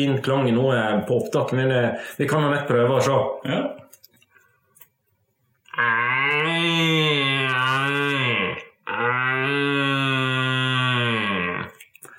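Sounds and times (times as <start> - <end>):
speech: 0.0 - 3.8
red deer stag roar blown through plastic tube: 5.7 - 11.8.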